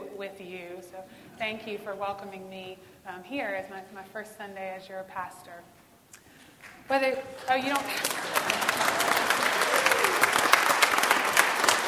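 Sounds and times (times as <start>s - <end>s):
speech: 0.2s - 5.8s, 6.9s - 8.7s
audience applause: 6.6s - 11.8s.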